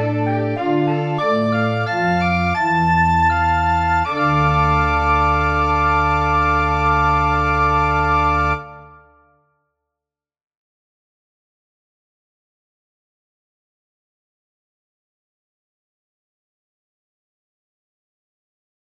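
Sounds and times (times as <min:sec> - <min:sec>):
organ playing a sonata in D minor: 0:00.0 - 0:09.0.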